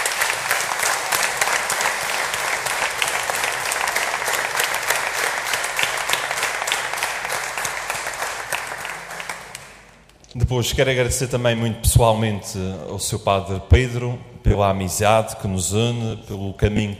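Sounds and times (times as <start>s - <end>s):
audience applause: 0.0s - 10.1s
speech: 10.5s - 16.9s.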